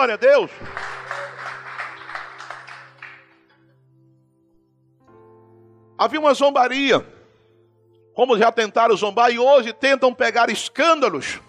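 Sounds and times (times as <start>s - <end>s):
speech: 0.0s - 1.4s, 6.0s - 7.2s, 8.2s - 11.4s
audience applauding: 0.0s - 3.6s.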